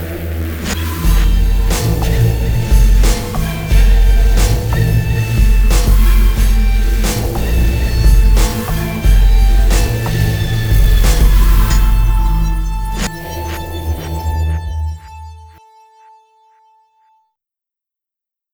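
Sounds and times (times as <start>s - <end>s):
cinematic sound: 0.5s - 16.9s.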